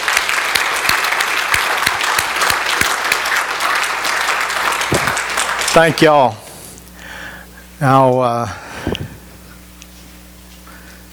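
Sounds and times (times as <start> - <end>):
audience applause: 0.0 - 6.4
speech: 5.8 - 6.4, 7.8 - 8.6.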